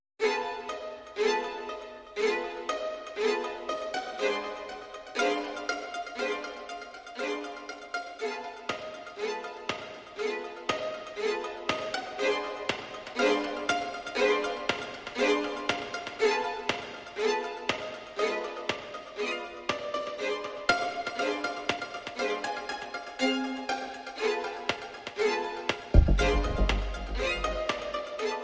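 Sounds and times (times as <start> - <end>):
aggressive string underscore music: 0.2 - 28.4.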